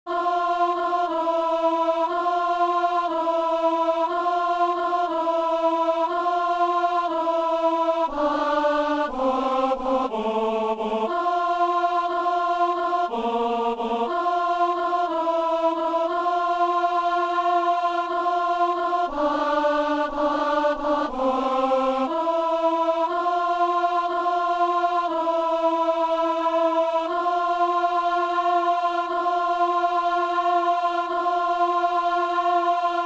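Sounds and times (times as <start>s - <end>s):
alto voice singing a mass part alone: 0.1s - 33.0s.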